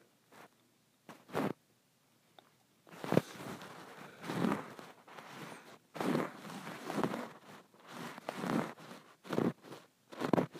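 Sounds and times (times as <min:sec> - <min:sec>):
scratching on a bumpy textured pillow: 0:00.3 - 0:00.5, 0:01.1 - 0:01.6, 0:02.9 - 0:10.5.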